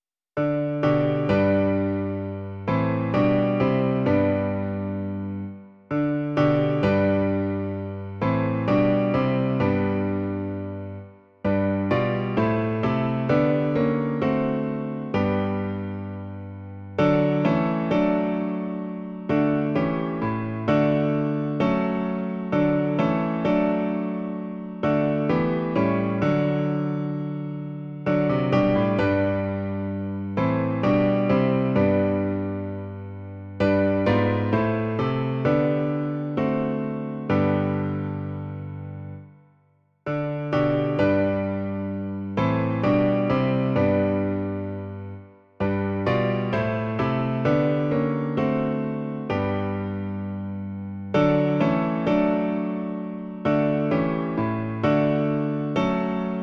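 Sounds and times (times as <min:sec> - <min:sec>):
piano version: 0:00.4 - 0:39.4, 0:40.0 - 0:56.4.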